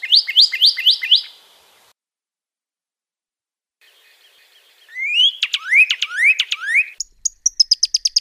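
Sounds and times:
Pyrrhuloxia song with downslurred whistles and rapid trill: 0.0 - 1.4, 4.9 - 8.2.

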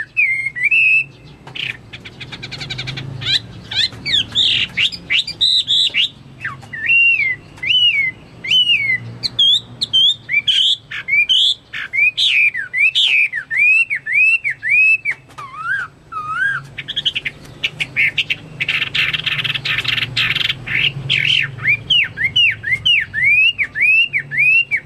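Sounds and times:
Chinese hwamei whistled song: 0.0 - 24.8.

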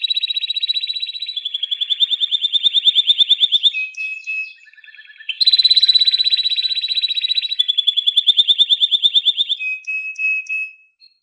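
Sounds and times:
canary song: 0.0 - 11.2.

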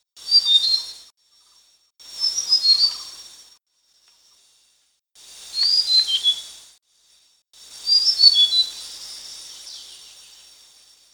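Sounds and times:
flycatcher whistling: 0.2 - 1.1, 2.1 - 3.3, 5.5 - 6.6, 7.8 - 8.8
soft hiss: 0.2 - 11.1.

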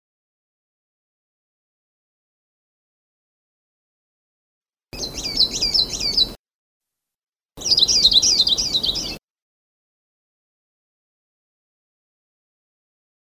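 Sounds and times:
Sulawesi leaf warbler singing: 5.0 - 6.4, 7.6 - 9.2.

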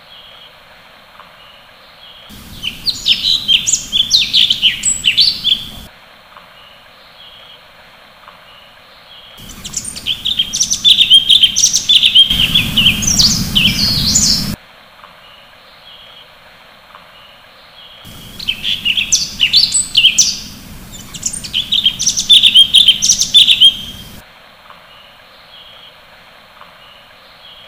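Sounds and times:
cucak cungkok bird chirping: 2.3 - 5.9, 9.2 - 14.6, 17.8 - 24.2.

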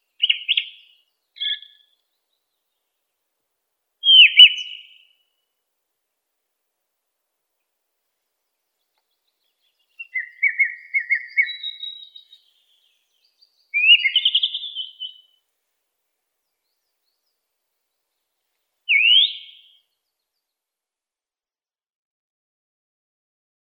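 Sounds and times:
song thrush singing varied phrases: 0.0 - 2.9, 4.0 - 5.3, 8.7 - 15.4, 18.9 - 20.6.

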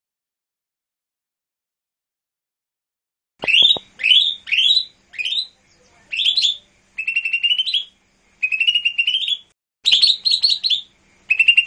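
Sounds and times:
Lesser green leafbird singing whistles, chirps and buzzy chatter: 3.4 - 11.6.

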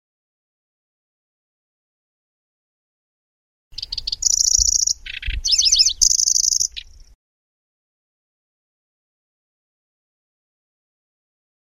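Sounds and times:
Grasshopper warbler song: 3.7 - 7.2.

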